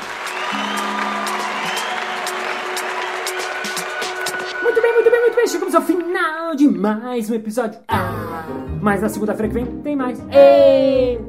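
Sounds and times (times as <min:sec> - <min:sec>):
audience applause: 0:00.0 - 0:06.0
speech: 0:05.4 - 0:11.2.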